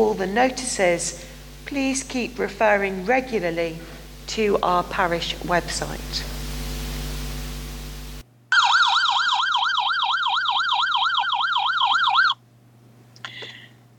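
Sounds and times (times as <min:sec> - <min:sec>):
speech: 0:00.0 - 0:06.4
ambulance or fire-engine siren going past: 0:08.5 - 0:12.4.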